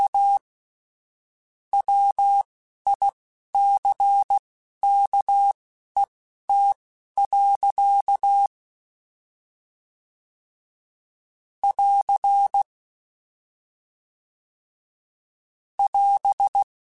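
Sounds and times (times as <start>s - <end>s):
Morse code beeps: 1.8s - 8.5s, 11.6s - 12.7s, 15.8s - 16.7s.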